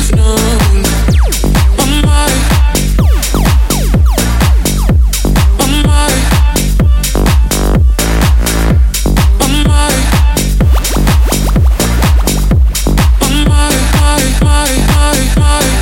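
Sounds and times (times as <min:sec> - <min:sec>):
tech house ringtone: 0:00.2 - 0:15.7.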